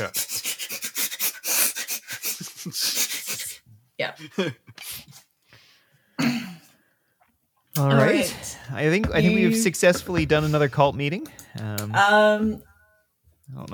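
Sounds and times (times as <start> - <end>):
person sniffing like a bloodhound: 0.0 - 3.6
speech: 2.6 - 3.0, 4.1 - 4.6, 7.8 - 12.7, 13.5 - 13.7.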